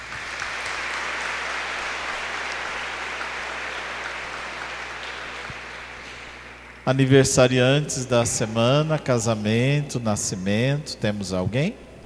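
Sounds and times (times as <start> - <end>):
applause: 0.0 - 6.8
speech: 6.9 - 11.8.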